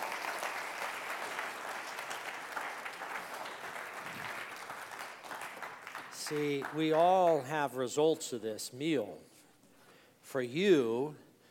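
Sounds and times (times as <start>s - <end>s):
round of applause for the dining hall: 0.0s - 7.6s
speech: 6.3s - 9.3s, 10.3s - 11.2s.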